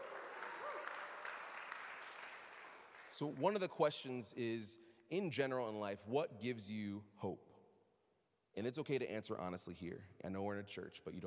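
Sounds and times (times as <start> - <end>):
audience clapping: 0.0 - 3.8
speech: 3.2 - 7.5, 8.6 - 11.2.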